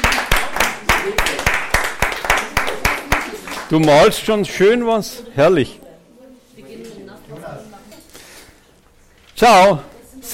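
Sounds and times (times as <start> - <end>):
audience applause: 0.0 - 4.3
speech: 3.7 - 5.8, 9.4 - 10.3.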